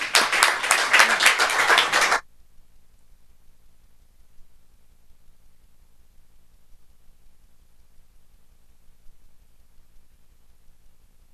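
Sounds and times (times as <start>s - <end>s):
audience applause: 0.0s - 2.2s.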